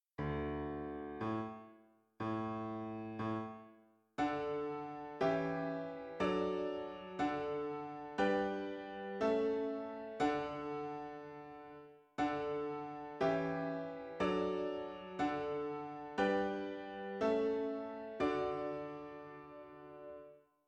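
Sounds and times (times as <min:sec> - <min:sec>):
piano: 0:00.0 - 0:20.5.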